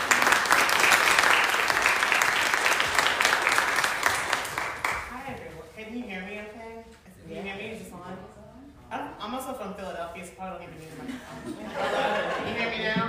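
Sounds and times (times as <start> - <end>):
audience applause: 0.0 - 5.1
woman speaking: 5.1 - 11.4
laughter: 11.0 - 13.0.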